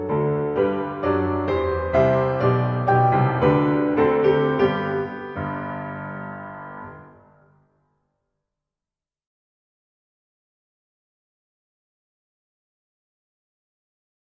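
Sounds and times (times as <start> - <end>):
piano accompaniment: 0.0 - 7.8.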